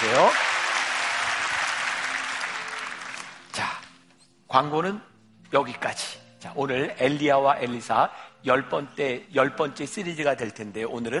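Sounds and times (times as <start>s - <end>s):
audience applause for a church choir: 0.0s - 3.5s
speech: 0.2s - 0.5s, 4.5s - 11.1s.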